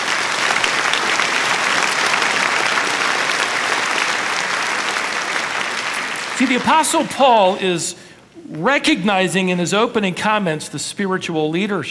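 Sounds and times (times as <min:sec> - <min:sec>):
large audience applause: 0:00.0 - 0:07.8
speech: 0:06.4 - 0:11.8.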